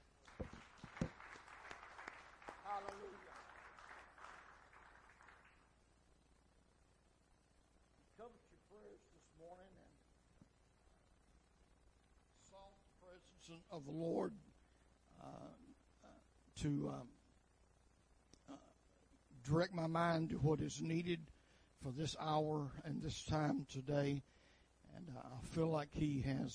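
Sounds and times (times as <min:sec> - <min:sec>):
audience clapping hands: 0:00.0 - 0:05.8
speech: 0:02.7 - 0:03.4, 0:08.3 - 0:10.0, 0:12.5 - 0:14.5, 0:15.2 - 0:15.7, 0:16.6 - 0:17.2, 0:19.4 - 0:26.5.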